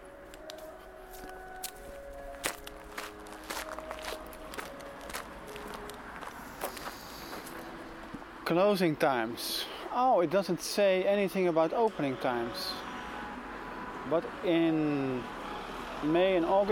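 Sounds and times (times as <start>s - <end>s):
footsteps of a person walking through a park: 0.2s - 8.3s
speech: 8.5s - 12.9s, 14.1s - 15.4s, 16.0s - 16.7s.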